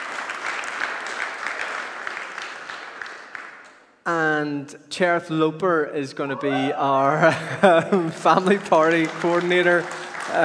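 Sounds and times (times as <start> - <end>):
audience applauding: 0.0 - 3.8, 8.2 - 10.4
speech: 4.0 - 10.4
laughter: 6.2 - 10.4.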